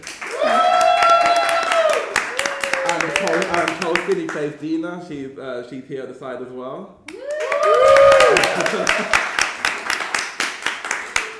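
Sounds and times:
audience cheering and clapping: 0.0s - 4.3s, 7.1s - 11.3s
speech: 4.1s - 7.1s, 7.7s - 9.3s
laughter: 8.2s - 9.4s.

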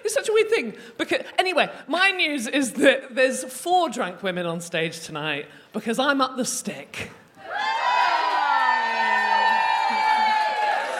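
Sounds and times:
speech: 0.1s - 7.6s
crowd cheering and whooping: 7.4s - 10.9s.

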